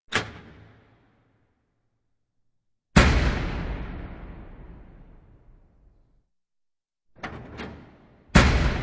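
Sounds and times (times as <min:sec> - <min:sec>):
doors: 0:00.1 - 0:01.7, 0:07.1 - 0:08.7.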